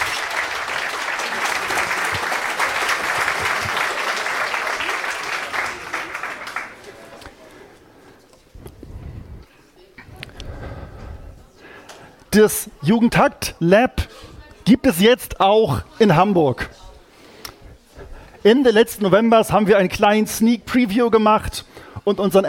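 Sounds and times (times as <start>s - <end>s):
audience applause: 0.0s - 7.5s
speech: 12.4s - 14.0s, 14.7s - 16.7s, 18.4s - 22.4s.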